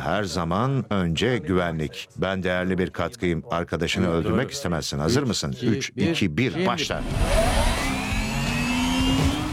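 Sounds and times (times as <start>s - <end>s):
speech: 0.0s - 7.8s
car engine accelerating during speed test: 7.0s - 9.5s.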